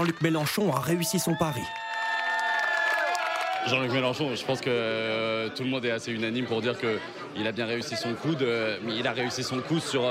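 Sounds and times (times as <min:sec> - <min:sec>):
speech: 0:00.0 - 0:01.9, 0:03.6 - 0:10.0
crowd cheering encouragement: 0:00.0 - 0:04.5.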